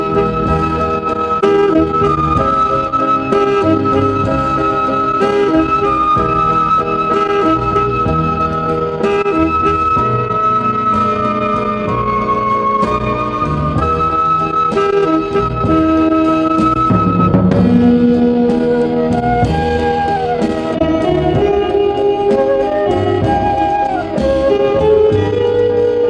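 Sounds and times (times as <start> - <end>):
instrumental ensemble playing: 0.0 - 26.0.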